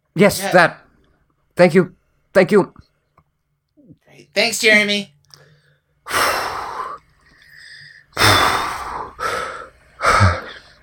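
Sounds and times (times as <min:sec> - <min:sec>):
speech: 0:00.2 - 0:00.8, 0:01.6 - 0:02.8, 0:04.2 - 0:05.2
heavy breathing: 0:05.3 - 0:10.8.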